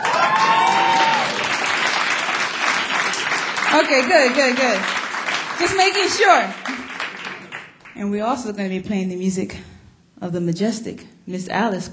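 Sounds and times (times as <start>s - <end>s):
audience clapping: 0.0s - 8.0s
speech: 3.8s - 5.0s, 5.6s - 6.8s, 8.0s - 11.9s.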